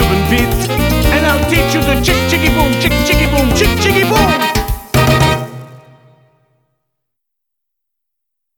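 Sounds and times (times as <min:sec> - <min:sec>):
Latin band playing: 0:00.0 - 0:06.3.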